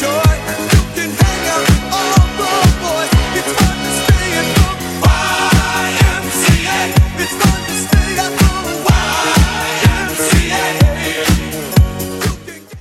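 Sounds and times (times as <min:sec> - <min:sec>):
70s style drum beat at 125 bpm: 0:00.2 - 0:12.4.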